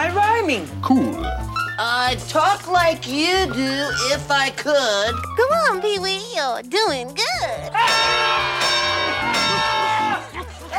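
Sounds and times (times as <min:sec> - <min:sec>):
speech: 0:00.1 - 0:08.6
audience screaming: 0:07.8 - 0:10.4
scattered shouts: 0:07.8 - 0:10.4.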